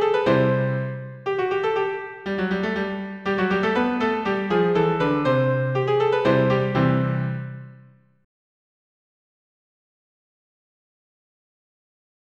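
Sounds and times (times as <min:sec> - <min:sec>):
polka on piano: 0:00.0 - 0:08.0.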